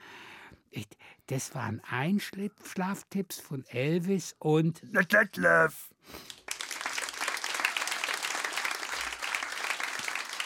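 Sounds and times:
speech: 0.8 - 6.3
crowd applauding: 6.3 - 10.4.

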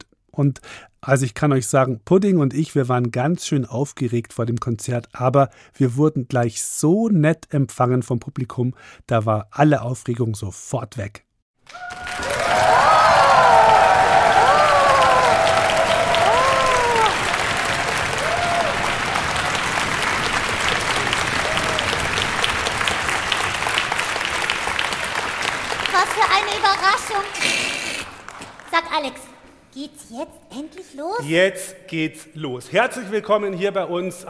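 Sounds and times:
speech: 0.4 - 12.9, 28.8 - 34.2
excited shouts and whoops: 11.7 - 17.4, 18.1 - 18.9
large crowd applause at a live concert: 11.7 - 28.9.

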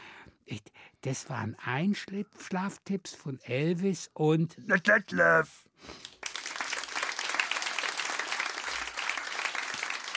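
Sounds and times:
speech: 0.5 - 6.1
crowd applauding: 6.0 - 10.1.

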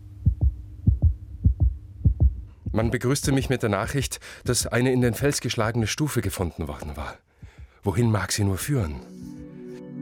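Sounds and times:
loud pounding heartbeat: 0.0 - 3.6, 4.4 - 5.4, 7.4 - 7.8
speech: 2.8 - 9.3.

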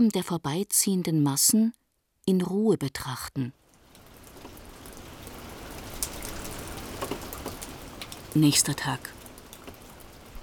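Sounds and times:
speech: 0.0 - 3.6, 8.4 - 9.2
continuous rain: 3.6 - 10.4.

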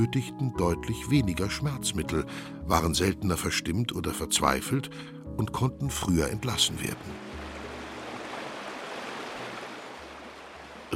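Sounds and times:
speech: 0.0 - 7.5
river rushing under a stone bridge: 7.3 - 10.9.

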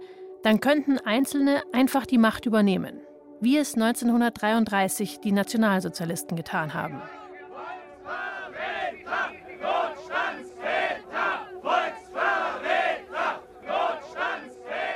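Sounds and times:
speech: 0.4 - 7.2
crowd of protesters chanting in unison: 6.9 - 14.9.

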